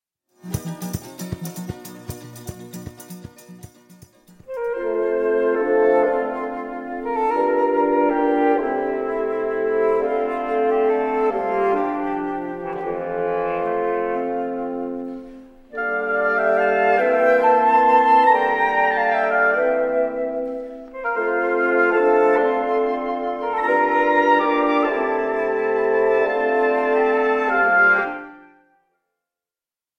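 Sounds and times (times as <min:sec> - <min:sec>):
traditional Zambian banjo playing: 0:00.4 - 0:28.2.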